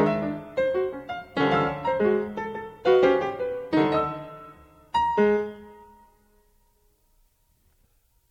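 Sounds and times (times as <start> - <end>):
very fast piano variations: 0.0 - 6.2.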